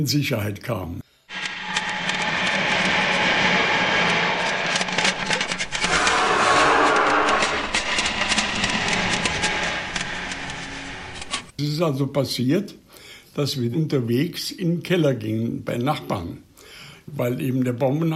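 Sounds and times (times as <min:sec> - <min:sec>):
speech: 0:00.0 - 0:01.1, 0:11.6 - 0:12.8, 0:13.4 - 0:16.5, 0:17.1 - 0:18.1
droning aircraft engines in the sky: 0:01.3 - 0:11.5.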